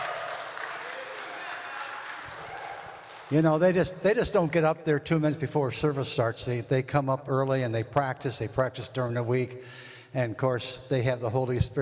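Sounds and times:
round of applause: 0.0s - 3.4s
speech: 3.3s - 11.8s.

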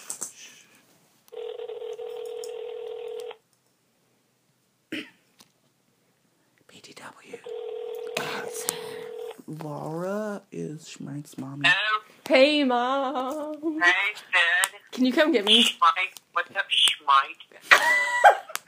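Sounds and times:
telephone buzzing tones as a call is placed to someone's mom: 1.3s - 3.4s, 7.5s - 9.4s
faint throat clearing: 4.9s - 5.3s
speech: 9.5s - 18.0s.

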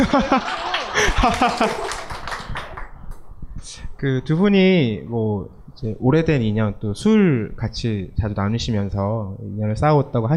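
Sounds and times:
speech: 0.0s - 2.0s, 4.0s - 10.3s
laughter: 0.0s - 2.8s
audience applause: 0.4s - 2.9s.

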